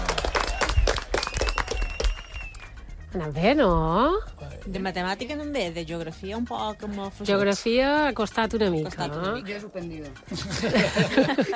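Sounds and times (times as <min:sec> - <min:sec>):
loud applause: 0:00.0 - 0:02.7
speech: 0:03.1 - 0:11.5
laughter: 0:10.3 - 0:11.5.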